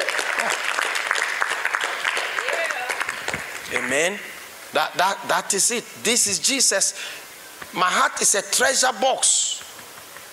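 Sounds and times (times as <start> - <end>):
crowd clapping: 0.0 - 4.2
speech: 3.8 - 9.4.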